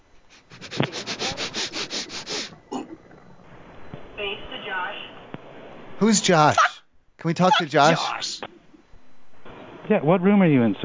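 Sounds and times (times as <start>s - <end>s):
dog sniffing a phone: 0.3s - 2.6s
speech: 6.0s - 6.6s, 7.2s - 8.3s, 9.9s - 10.8s.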